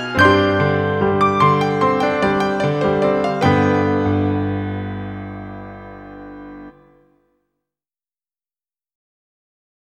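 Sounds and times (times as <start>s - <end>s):
piano arrangement: 0.0s - 7.0s.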